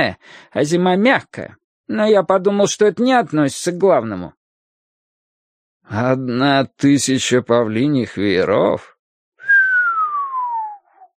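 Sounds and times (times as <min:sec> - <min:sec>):
speech: 0:00.0 - 0:04.4, 0:05.9 - 0:08.9
man giving a long drawn-out whistle: 0:09.4 - 0:11.1.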